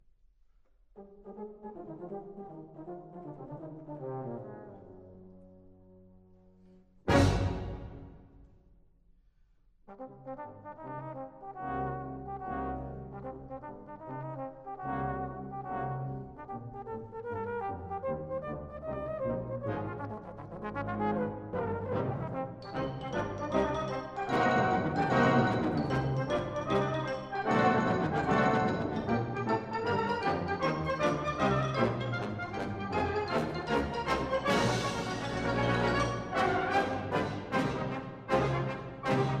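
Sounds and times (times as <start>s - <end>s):
concerto for E flat horn: 1.0s - 8.4s, 9.9s - 39.3s.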